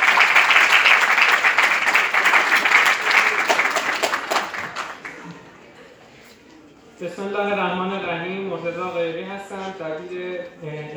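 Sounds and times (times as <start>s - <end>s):
audience applause at a student association ceremony: 0.0s - 5.8s
speech: 7.0s - 10.9s.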